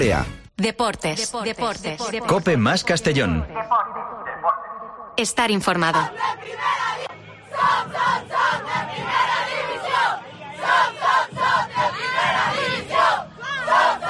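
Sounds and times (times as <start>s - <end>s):
speech: 0.0s - 4.6s, 5.2s - 9.2s
women's football team cheering and chanting after avoiding relegation: 5.6s - 14.0s.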